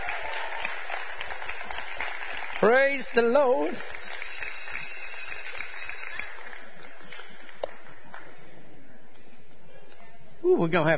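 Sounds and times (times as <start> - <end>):
audience round of applause: 0.0 - 8.4
speech: 2.6 - 4.0, 10.4 - 10.9.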